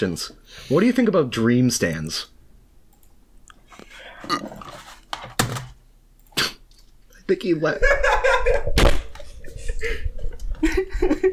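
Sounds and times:
speech: 0.0s - 2.4s, 4.3s - 4.6s, 7.3s - 9.0s, 9.8s - 11.3s
laughter: 7.8s - 11.3s
headphones thrown down: 8.8s - 9.3s.

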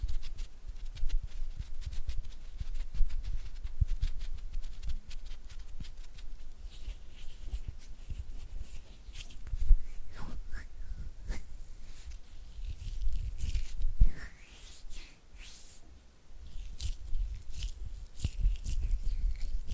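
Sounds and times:
oily hands fluttering and rubbing: 0.0s - 19.7s.

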